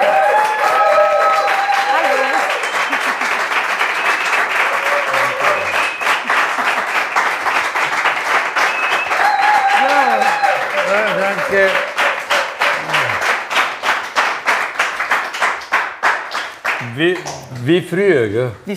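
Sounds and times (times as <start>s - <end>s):
audience applause welcoming a guest: 0.0s - 17.7s
speech: 17.6s - 18.7s.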